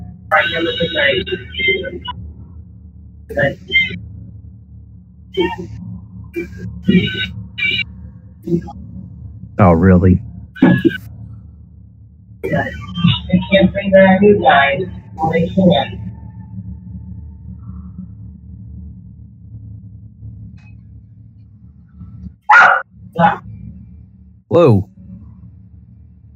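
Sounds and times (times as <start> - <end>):
low hum: 0.0 - 26.3
speech: 0.4 - 2.2, 3.3 - 4.1, 5.3 - 8.8, 9.6 - 11.1, 12.4 - 16.0, 23.2 - 23.5, 24.5 - 24.9
dog barking: 22.5 - 22.8.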